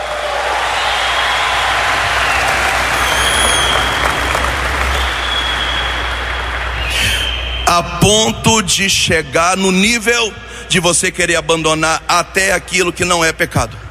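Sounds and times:
audience applause: 0.0 - 7.4
speech: 7.8 - 13.8.

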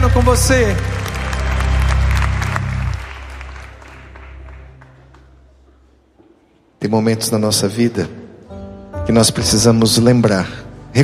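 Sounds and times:
audience applauding: 0.0 - 5.7
speech: 0.2 - 1.0, 6.8 - 8.2, 9.1 - 11.0.

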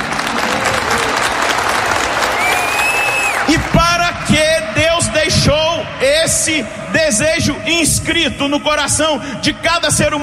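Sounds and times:
audience applause: 0.0 - 5.2
speech: 6.5 - 10.2.

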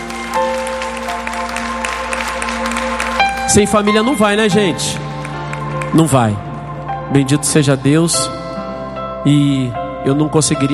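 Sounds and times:
audience applause: 0.0 - 4.4
speech: 3.5 - 5.1, 5.9 - 6.5, 7.1 - 8.4, 9.2 - 10.7.

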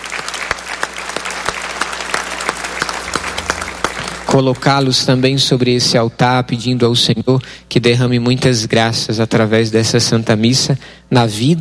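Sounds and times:
round of applause: 0.0 - 4.8
speech: 4.4 - 11.5.

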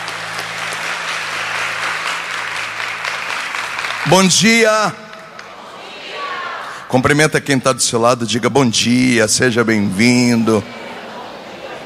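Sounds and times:
audience applauding: 0.0 - 5.6
speech: 4.0 - 5.0, 6.9 - 10.8.

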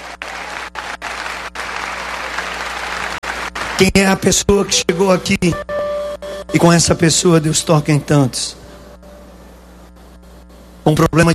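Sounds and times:
audience applause: 0.0 - 4.2
speech: 3.8 - 5.7, 6.5 - 8.6, 10.9 - 11.3.

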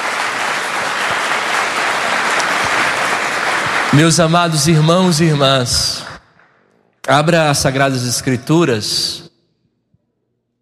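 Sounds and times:
audience applause: 0.0 - 6.4
speech: 3.9 - 6.1, 7.1 - 9.2.

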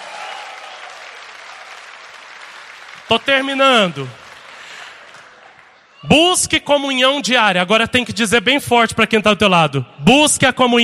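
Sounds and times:
church congregation applauding during a Portuguese-language Mass sermon: 0.0 - 6.5
speech: 3.1 - 4.2, 6.0 - 10.8.

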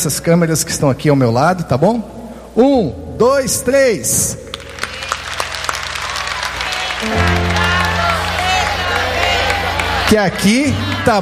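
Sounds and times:
speech: 0.0 - 4.4, 10.1 - 11.2
studio audience applause: 4.5 - 11.2.

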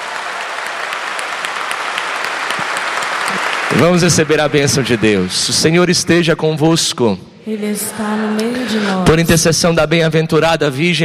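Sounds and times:
audience applause: 0.0 - 6.3
speech: 3.8 - 11.0.

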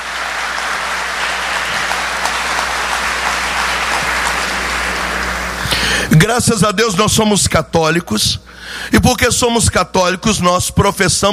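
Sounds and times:
audience applause: 0.0 - 6.1
speech: 6.2 - 11.3.

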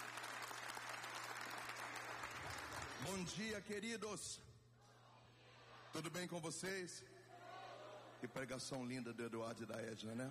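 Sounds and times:
congregation clapping in church during worship singing: 0.0 - 3.7
speech: 3.0 - 4.5, 5.9 - 7.2, 8.2 - 10.3.

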